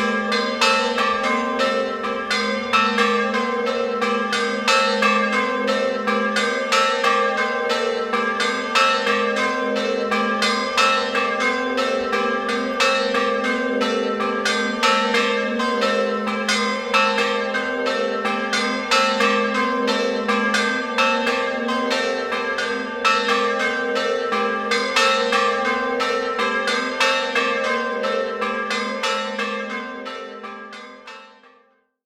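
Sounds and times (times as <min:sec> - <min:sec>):
large bell and bells ringing: 0:00.0 - 0:31.5.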